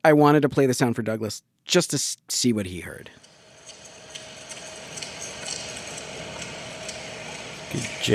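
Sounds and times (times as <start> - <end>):
speech: 0.0 - 3.3, 7.7 - 8.1
air conditioner hum: 2.0 - 8.1.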